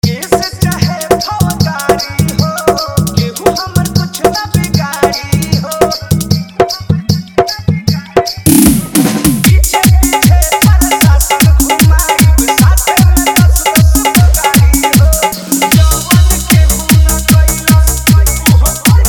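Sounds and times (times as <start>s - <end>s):
Bhojpuri dholak bass remix: 0.0s - 19.0s.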